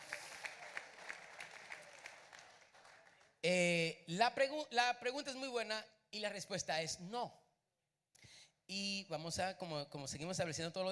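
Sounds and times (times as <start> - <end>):
audience applause: 0.0 - 3.4
speech: 3.4 - 7.4, 8.7 - 10.9.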